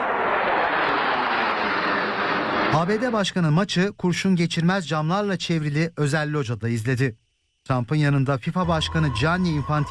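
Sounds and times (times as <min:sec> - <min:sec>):
four US Air Force fighter jets flying low over a stadium: 0:00.0 - 0:03.2
speech: 0:02.7 - 0:09.8.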